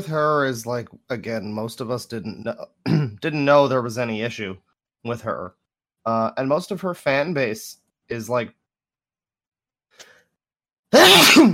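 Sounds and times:
speech: 0.0 - 8.6, 10.9 - 11.5
sneeze: 10.9 - 11.5.

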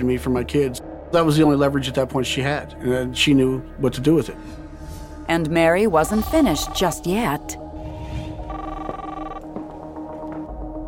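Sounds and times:
speech: 0.0 - 4.6, 5.3 - 7.6
telephone ringing: 6.0 - 7.0, 8.4 - 9.5.

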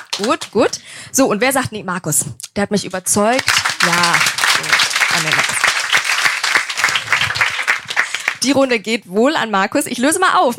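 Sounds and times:
audience clapping: 0.0 - 0.8, 3.3 - 8.8
speech: 0.2 - 5.7, 8.4 - 10.5.

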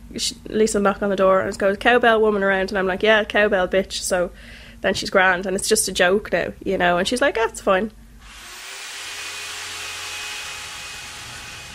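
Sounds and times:
speech: 0.1 - 8.0
neighbour's power drill running: 8.2 - 11.7.

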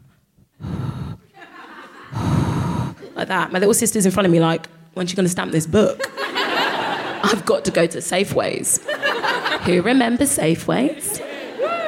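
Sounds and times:
person imitating sharp exaggerated breaths: 0.6 - 1.3, 2.1 - 3.1
laughter: 1.3 - 2.2, 6.0 - 7.5, 8.8 - 9.9, 10.9 - 11.8
speech: 3.2 - 6.4, 7.2 - 8.9, 9.6 - 11.1.

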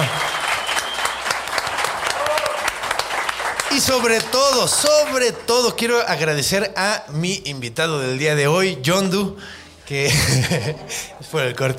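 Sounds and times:
audience applause: 0.0 - 5.5
speech: 3.7 - 11.7
laughter: 10.0 - 11.5.

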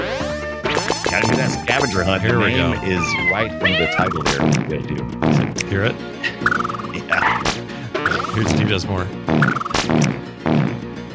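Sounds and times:
cartoonish video game fart sound effects: 0.7 - 1.9, 3.2 - 5.7, 6.4 - 8.6, 9.3 - 10.8
speech: 1.2 - 7.5, 8.4 - 10.7.

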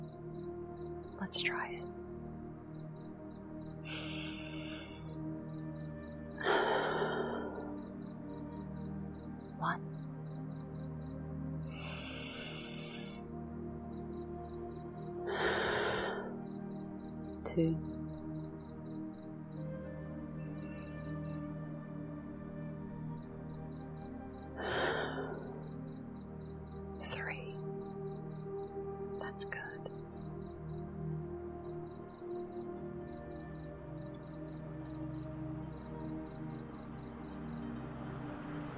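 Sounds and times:
faint tones: 0.0 - 38.7
speech: 1.2 - 2.0, 3.8 - 4.1
slow breathing in a guided breathing exercise: 3.8 - 5.1, 6.4 - 8.0, 11.7 - 13.3, 15.3 - 16.4, 24.6 - 25.8.

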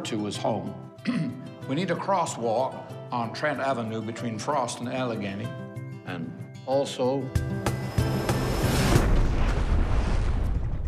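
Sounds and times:
speech: 0.0 - 7.9
UFO crash explosion effect: 8.1 - 10.8
roaring rumble of debris: 8.9 - 10.8.

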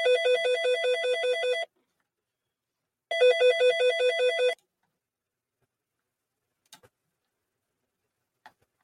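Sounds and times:
mobile phone ringtone: 0.0 - 1.7, 3.1 - 4.6.

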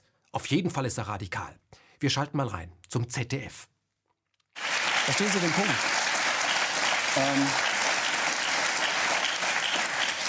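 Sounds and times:
speech: 0.4 - 3.7, 5.1 - 6.0, 7.1 - 7.7
studio audience applause: 4.6 - 10.2.

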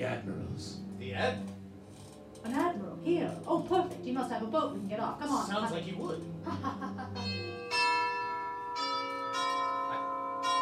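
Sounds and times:
speech: 0.0 - 1.6, 2.4 - 7.5
deep doorbell ringing: 7.1 - 10.5.

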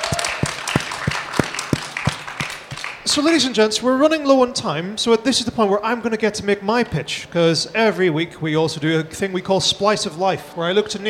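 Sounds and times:
audience applause: 0.0 - 3.2
speech: 3.1 - 11.0.

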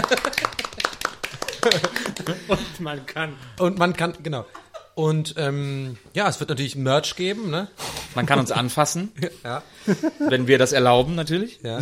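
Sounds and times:
hand clapping: 0.0 - 2.6
laughter: 0.0 - 3.0, 9.8 - 10.4
speech: 1.6 - 11.7.

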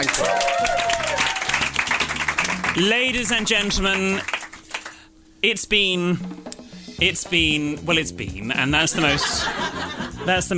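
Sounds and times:
audience applause: 0.0 - 5.0
speech: 2.8 - 4.4, 5.4 - 10.5
laughter: 8.8 - 10.5.

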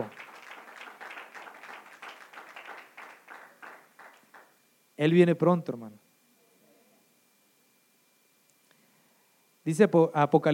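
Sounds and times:
audience applause: 0.0 - 4.5
speech: 5.0 - 6.0, 9.7 - 10.5.

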